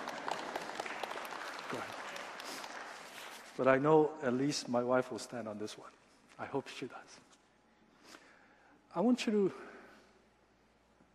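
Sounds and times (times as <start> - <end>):
crowd applause: 0.0 - 3.4
speech: 1.7 - 2.0, 3.6 - 7.3, 9.0 - 9.7.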